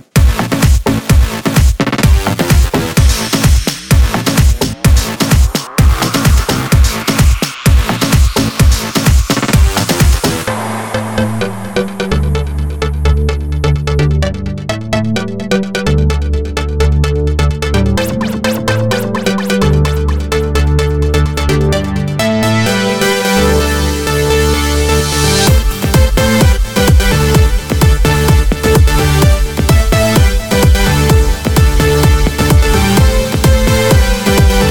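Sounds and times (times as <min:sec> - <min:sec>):
progressive house and electro house music: 0:00.0 - 0:34.6.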